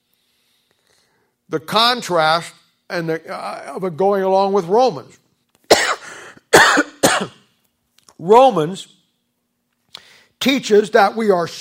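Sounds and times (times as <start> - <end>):
speech: 1.5 - 5.2, 8.2 - 9.0, 10.4 - 11.6
person coughing after swallowing wrong: 5.7 - 7.5.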